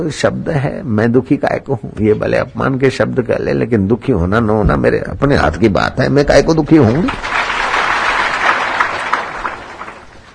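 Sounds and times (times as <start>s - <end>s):
speech: 0.0s - 7.3s
audience clapping: 6.7s - 10.3s.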